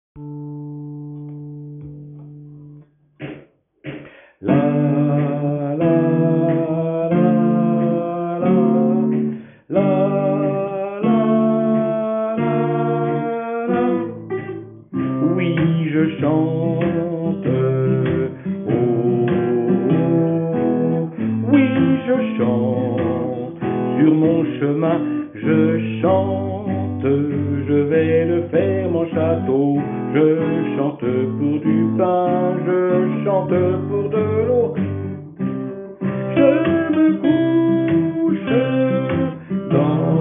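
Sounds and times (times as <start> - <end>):
sopranos singing: 4.4 - 34.8, 36.0 - 40.1.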